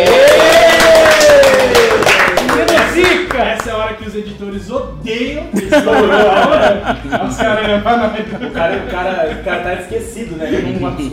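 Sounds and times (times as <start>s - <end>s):
round of applause: 0.0s - 3.8s
speech: 4.6s - 11.1s
laughter: 5.5s - 11.1s.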